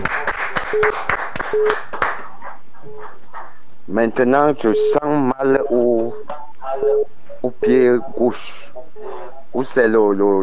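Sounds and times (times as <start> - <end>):
church congregation clapping rhythmically during a worship service: 0.0 - 3.6
speech: 0.7 - 1.9, 3.9 - 8.7, 9.5 - 10.4.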